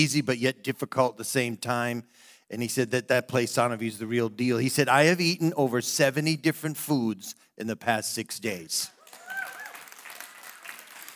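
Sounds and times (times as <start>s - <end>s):
speech: 0.0s - 9.0s
audience applauding: 9.0s - 11.1s.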